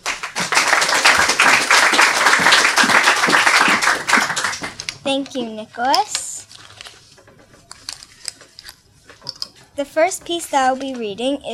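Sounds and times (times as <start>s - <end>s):
audience applause: 0.0s - 4.9s
speech: 5.1s - 6.2s, 9.8s - 11.5s.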